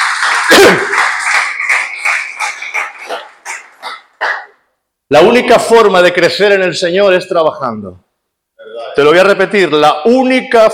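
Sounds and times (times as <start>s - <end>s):
audience applause: 0.0s - 4.3s
speech: 0.5s - 1.0s, 5.1s - 8.0s, 9.0s - 10.7s.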